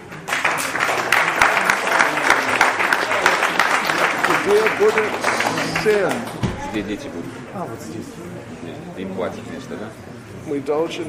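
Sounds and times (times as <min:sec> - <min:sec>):
audience applause at a gathering of Vaishnavas: 0:00.0 - 0:07.1
speech: 0:04.5 - 0:11.0.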